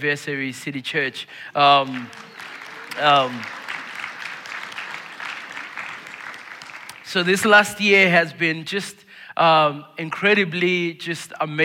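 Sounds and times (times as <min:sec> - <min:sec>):
speech: 0:00.0 - 0:02.4, 0:03.0 - 0:03.6, 0:07.1 - 0:11.6
audience clapping hands: 0:01.2 - 0:07.6.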